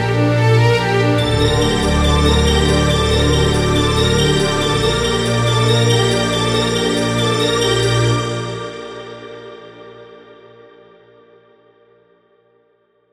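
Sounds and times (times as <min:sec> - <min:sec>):
strings: 0:00.0 - 0:10.4.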